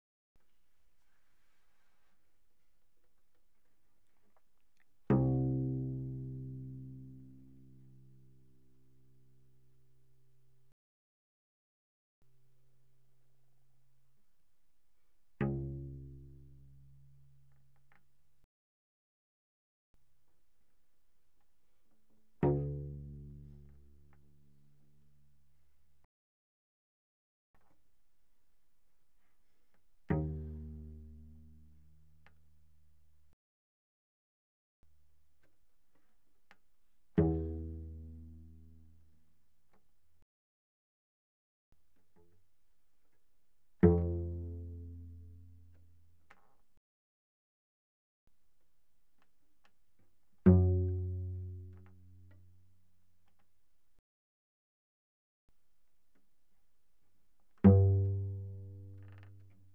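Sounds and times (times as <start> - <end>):
cello pizzicato mezzo-forte on the C string: 4.8 - 9.0, 15.4 - 18.0, 22.2 - 25.1, 29.3 - 32.4, 37.1 - 39.1, 43.8 - 45.8, 50.4 - 52.7, 57.6 - 59.7.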